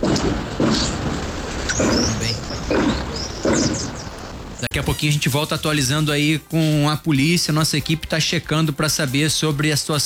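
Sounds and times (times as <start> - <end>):
gunshots in Vila Aliança neighborhood: 0.0 - 4.7
constant hiss: 0.0 - 9.9
speech: 4.7 - 10.0.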